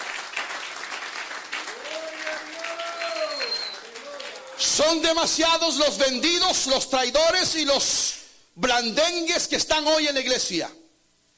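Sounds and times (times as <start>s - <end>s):
applause from a large crowd: 0.0s - 4.8s
speech: 4.6s - 10.8s.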